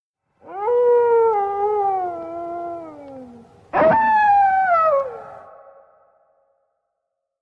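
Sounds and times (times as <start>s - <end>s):
wolf howling: 0.4s - 6.0s.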